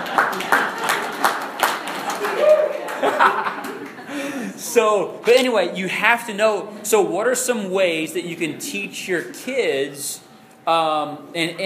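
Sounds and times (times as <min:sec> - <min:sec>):
audience round of applause: 0:00.0 - 0:04.1
laughter: 0:01.9 - 0:05.0
speech: 0:04.7 - 0:11.6.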